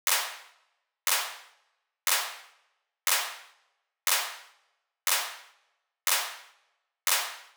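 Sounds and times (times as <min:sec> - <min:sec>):
nu disco handclap: 0:00.1 - 0:00.4, 0:01.1 - 0:01.4, 0:02.1 - 0:02.4, 0:03.1 - 0:03.4, 0:04.1 - 0:04.4, 0:05.1 - 0:05.4, 0:06.1 - 0:06.4, 0:07.1 - 0:07.4.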